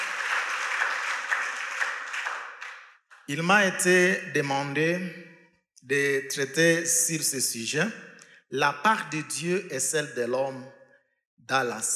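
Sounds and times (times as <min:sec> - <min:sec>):
congregation applauding during a French-language church service: 0:00.0 - 0:03.4
speech: 0:03.3 - 0:05.2, 0:05.9 - 0:10.8, 0:11.4 - 0:11.9.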